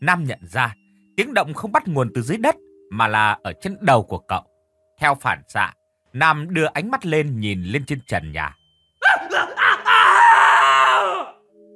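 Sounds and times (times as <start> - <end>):
speech: 0.0 - 8.6
young man's terrified scream in a row of rented rooms: 9.0 - 11.4.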